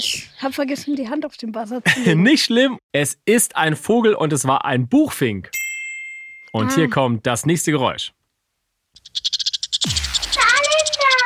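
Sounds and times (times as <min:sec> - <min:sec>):
speech: 0:00.0 - 0:05.6, 0:06.5 - 0:08.2, 0:09.1 - 0:10.1
squirrel call: 0:09.0 - 0:11.2.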